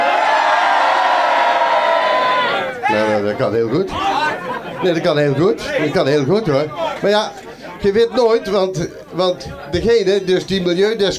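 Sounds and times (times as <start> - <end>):
crowd shouting loudly: 0.0 - 3.2, 3.9 - 4.7
speech: 2.9 - 4.2, 4.8 - 11.1.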